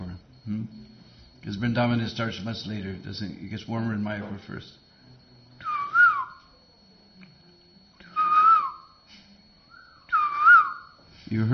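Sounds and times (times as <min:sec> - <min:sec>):
speech: 0:01.4 - 0:04.8, 0:11.3 - 0:11.5
person whistling an imitation of a koel's call: 0:05.6 - 0:06.4, 0:08.1 - 0:08.8, 0:09.7 - 0:10.9.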